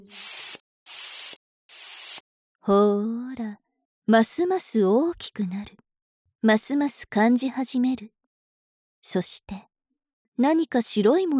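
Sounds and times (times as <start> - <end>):
nipple pump suction hiss: 0.0 - 2.2
speech: 2.6 - 5.8, 6.4 - 8.2, 9.0 - 9.7, 10.4 - 11.3.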